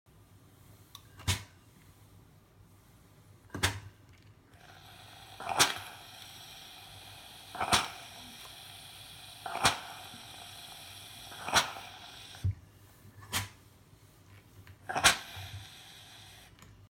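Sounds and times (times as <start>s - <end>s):
steam iron: 4.6s - 12.5s, 14.9s - 16.6s.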